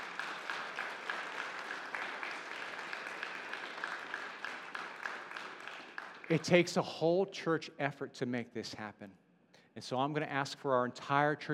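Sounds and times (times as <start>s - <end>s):
audience applause: 0.0s - 6.7s
speech: 6.3s - 9.2s, 9.8s - 11.5s.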